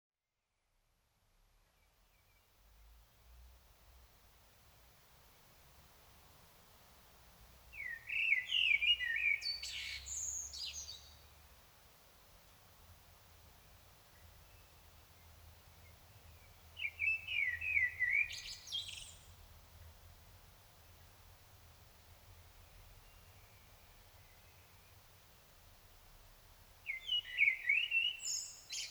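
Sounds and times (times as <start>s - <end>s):
Common blackbird singing: 7.7s - 11.2s, 16.8s - 19.4s, 26.9s - 28.8s.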